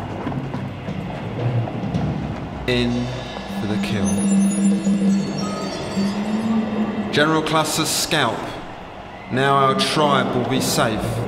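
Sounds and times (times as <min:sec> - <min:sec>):
hooves of General Custer's horse clip-clopping: 0:00.0 - 0:02.7
continuous rumbling noise: 0:00.0 - 0:11.2
speech: 0:02.7 - 0:05.4, 0:07.2 - 0:08.6, 0:09.3 - 0:11.2.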